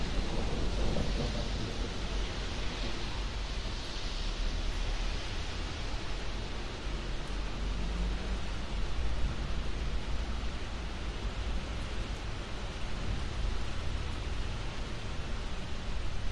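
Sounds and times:
thunder over an urban industrial estate: 0.0s - 5.0s
rain on an urban industrial estate: 0.0s - 16.3s.

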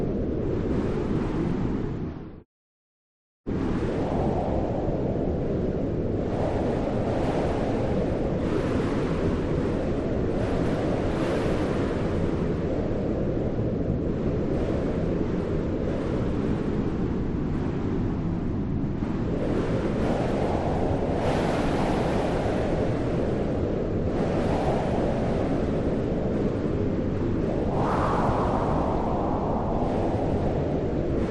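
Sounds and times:
cold exterior wind: 0.0s - 2.4s, 3.5s - 31.2s.

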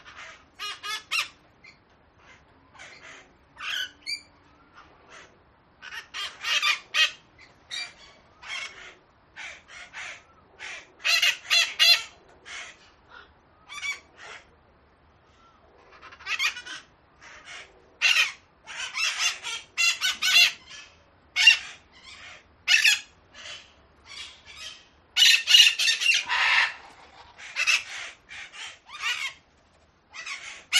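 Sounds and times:
several angry parakeets giving harsh raspy screeches: 0.0s - 14.5s, 15.9s - 29.4s, 30.1s - 30.7s.

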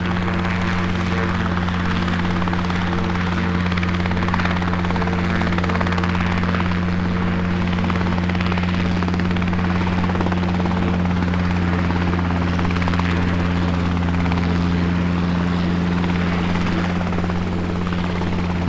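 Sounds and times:
helicopter idling on the ground: 0.0s - 18.6s.

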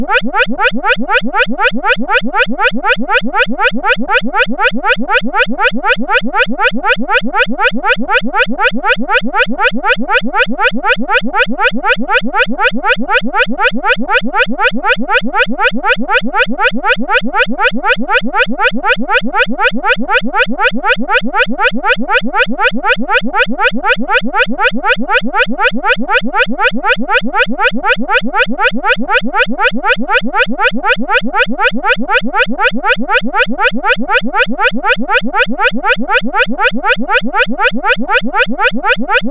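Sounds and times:
emergency alarm warning siren: 0.0s - 39.2s.

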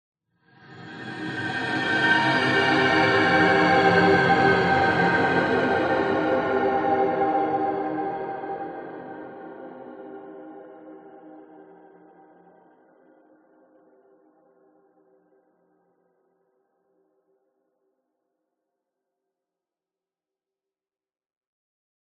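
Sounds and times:
horror swell pass-by ghostly drone with slight descent: 0.7s - 10.0s.

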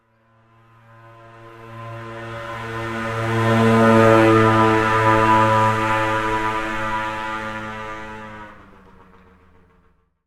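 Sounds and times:
motorcycle scooter passing by on a suburban street: 0.8s - 9.9s.

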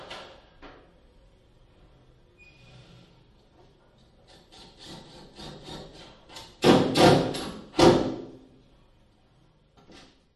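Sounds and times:
industrial electrician drilling wall in another office room 5m away: 4.2s - 8.1s.

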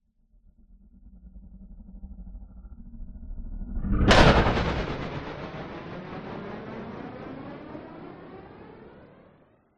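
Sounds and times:
sound design sweep stutter growl: 3.7s - 9.4s
metallic hit with flanged tail: 3.8s - 9.4s.

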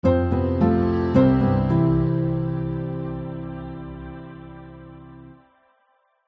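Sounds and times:
warm trustworthy piano and choir branding intro: 0.0s - 6.2s.

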